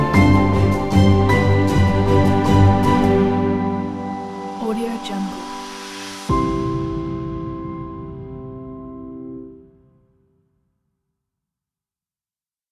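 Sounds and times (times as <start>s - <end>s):
uplifting piano music: 0.0s - 9.9s.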